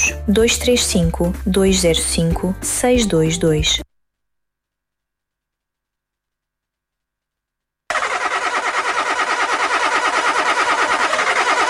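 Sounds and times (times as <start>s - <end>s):
speech: 0.3s - 3.9s
car engine cranking without starting: 7.9s - 11.6s.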